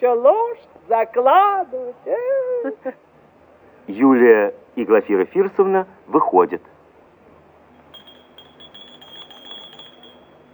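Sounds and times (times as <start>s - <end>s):
speech: 0.0s - 3.0s, 3.9s - 6.7s
doorbell ringing: 7.9s - 10.5s.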